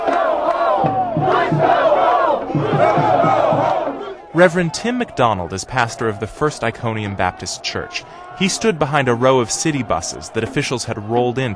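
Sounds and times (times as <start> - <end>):
protest crowd shouting and chanting: 0.0 - 11.5
speech: 4.4 - 11.5.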